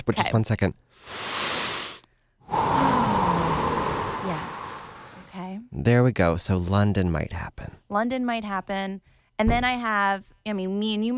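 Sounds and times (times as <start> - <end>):
speech: 0.1 - 1.3, 5.8 - 11.1
breathing in through the nose and out through the mouth during a calming exercise: 0.9 - 5.4.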